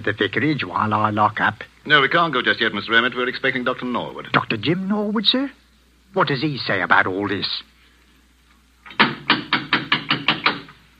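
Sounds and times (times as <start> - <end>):
speech: 0.0 - 7.7
knocking on a door: 8.9 - 10.8.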